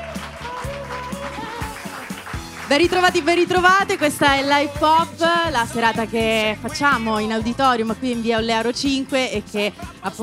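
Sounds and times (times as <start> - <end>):
faint cheering: 0.0 - 2.2
live audience applause: 0.0 - 4.2
speech: 2.7 - 10.2.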